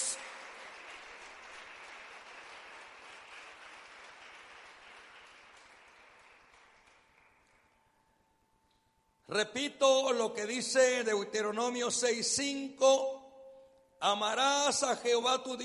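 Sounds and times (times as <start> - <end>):
audience applause: 0.0 - 7.8
speech: 9.3 - 13.2, 14.0 - 15.6.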